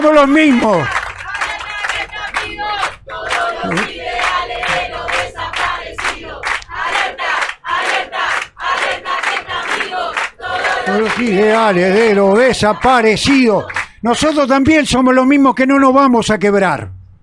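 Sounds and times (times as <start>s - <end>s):
speech: 0.0s - 1.0s, 3.6s - 4.1s, 10.9s - 17.0s
large crowd shouting a rhythmic chant: 0.4s - 13.9s.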